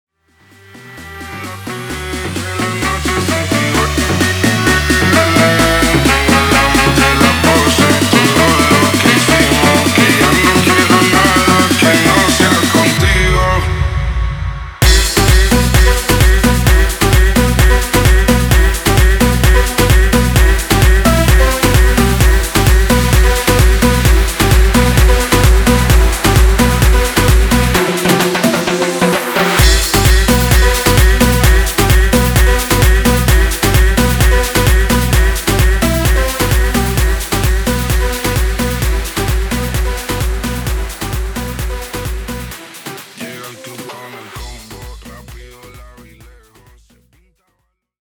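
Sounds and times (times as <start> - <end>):
130 bpm remix music: 0.2 - 47.2.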